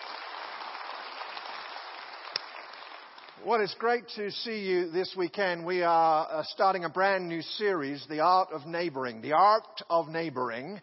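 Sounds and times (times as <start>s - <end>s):
audience applause: 0.0s - 3.4s
speech: 3.4s - 10.8s.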